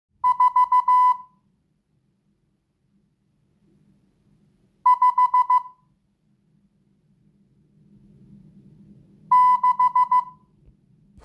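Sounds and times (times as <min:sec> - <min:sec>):
morse code beeps: 0:00.2 - 0:01.3, 0:04.9 - 0:05.7, 0:09.3 - 0:10.4.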